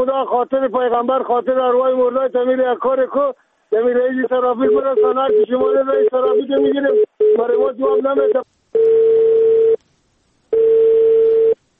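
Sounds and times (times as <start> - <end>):
speech: 0.0 - 9.0
telephone line tone after a dropped call: 4.6 - 9.8, 10.5 - 11.6.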